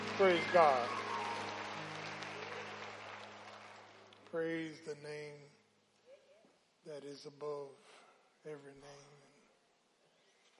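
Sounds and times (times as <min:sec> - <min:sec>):
audience applauding the choir: 0:00.0 - 0:04.7
speech: 0:00.2 - 0:01.0, 0:04.3 - 0:05.6, 0:06.8 - 0:09.2.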